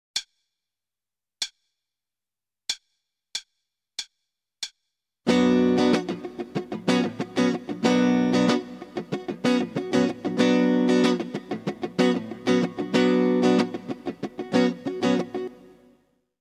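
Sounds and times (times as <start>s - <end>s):
starter guitar rhythm: 5.3s - 16.0s.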